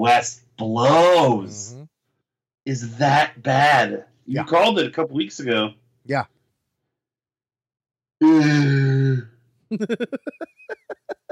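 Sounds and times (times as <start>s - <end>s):
speech: 0.0s - 1.8s, 2.6s - 6.4s, 8.2s - 10.9s
person yawning: 1.7s - 1.9s, 8.2s - 9.3s
laughter: 9.7s - 11.3s.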